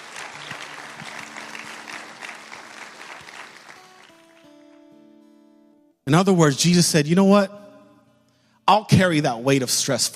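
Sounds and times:
audience clapping: 0.0s - 5.0s
speech: 6.1s - 7.6s, 8.7s - 10.1s.

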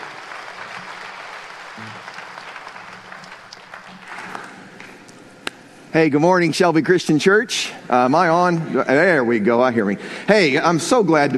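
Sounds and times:
audience applause and hand clapping: 0.0s - 5.1s
speech: 6.0s - 11.3s.

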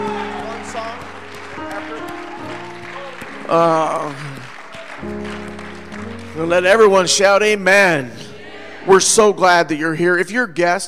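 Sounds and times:
audience hand clapping: 0.0s - 7.3s
speech: 3.5s - 4.3s, 6.4s - 8.2s, 8.8s - 10.8s.

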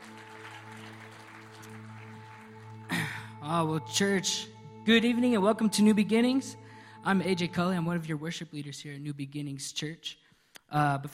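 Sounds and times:
church congregation applauding: 0.0s - 4.0s
sustained keyboard chord: 1.7s - 8.2s
speech: 3.5s - 11.1s.

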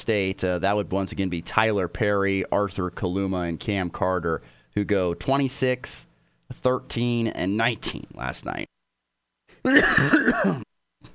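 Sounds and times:
speech: 0.0s - 8.7s, 9.6s - 10.7s
throat clearing: 9.5s - 11.1s.

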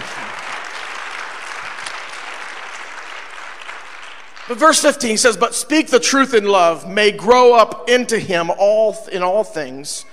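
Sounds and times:
audience applause, hand clapping: 0.0s - 5.0s
speech: 4.5s - 10.1s.

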